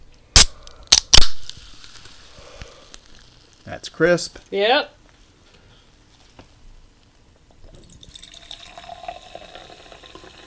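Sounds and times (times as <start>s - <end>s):
black cherry soda fizzing: 1.4s - 3.8s, 7.7s - 10.4s
speech: 3.7s - 5.0s.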